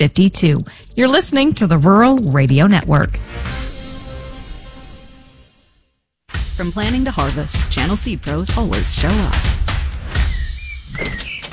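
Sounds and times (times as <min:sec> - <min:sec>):
speech: 0:00.0 - 0:03.7, 0:06.6 - 0:09.6, 0:10.9 - 0:11.3
refrigerator door opening with soft thump and clatter: 0:10.3 - 0:11.5.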